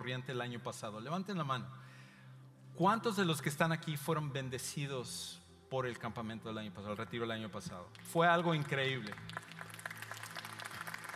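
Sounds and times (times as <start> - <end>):
speech: 0.0 - 2.0, 2.8 - 9.4
person clapping hands: 7.9 - 11.1.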